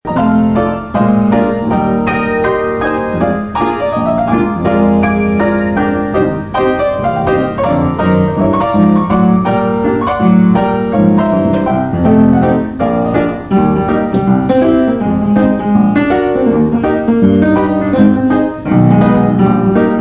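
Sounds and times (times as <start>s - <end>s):
Steinway piano: 0.0s - 19.9s.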